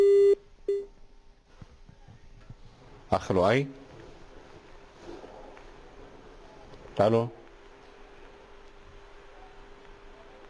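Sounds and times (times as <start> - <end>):
telephone call connecting tone: 0.0 - 0.9
speech: 3.1 - 3.8, 7.0 - 7.4.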